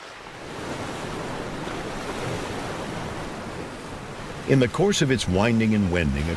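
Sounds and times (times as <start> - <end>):
Yellow River water flowing and surging: 0.0 - 6.3
speech: 4.5 - 6.3.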